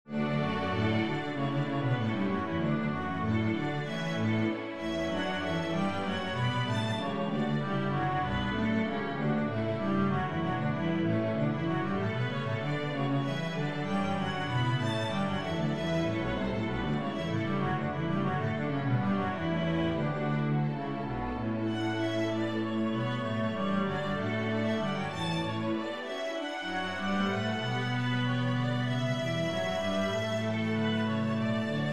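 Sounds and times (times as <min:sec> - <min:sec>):
string bass: 0:00.1 - 0:31.9.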